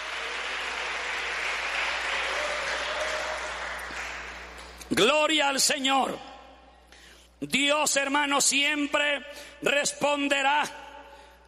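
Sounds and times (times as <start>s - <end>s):
audience applause: 0.0s - 4.8s
speech: 4.9s - 6.3s, 7.4s - 10.8s.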